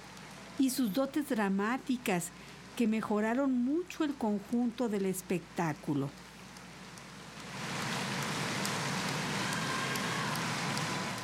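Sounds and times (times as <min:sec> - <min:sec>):
speech: 0:00.6 - 0:06.2
dense applause: 0:07.6 - 0:11.2
crowd cheering and shouting: 0:09.0 - 0:11.2.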